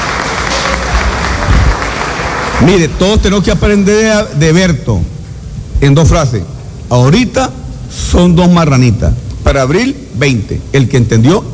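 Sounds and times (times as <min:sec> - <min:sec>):
applause: 0:00.0 - 0:03.4
speech: 0:02.6 - 0:05.2, 0:05.8 - 0:11.5.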